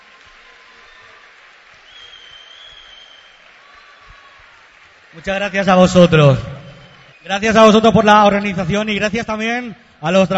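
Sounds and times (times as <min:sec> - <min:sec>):
audience applause: 0:00.0 - 0:08.2
speech: 0:05.1 - 0:06.5, 0:07.3 - 0:10.3.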